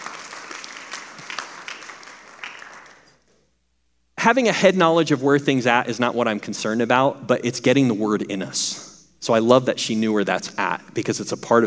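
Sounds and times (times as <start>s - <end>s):
audience clapping: 0.0s - 3.3s
speech: 4.2s - 11.6s.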